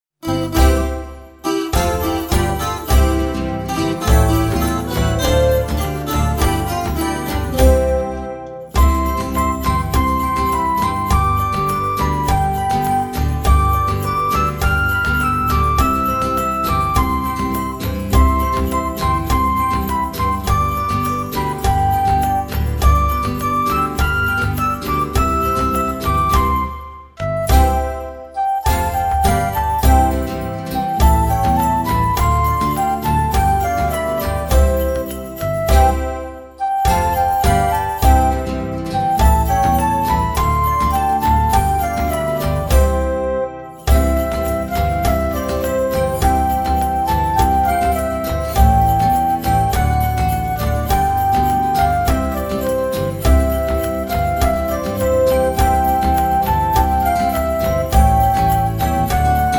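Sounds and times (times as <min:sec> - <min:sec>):
Christmas carol music: 0:00.2 - 0:59.5.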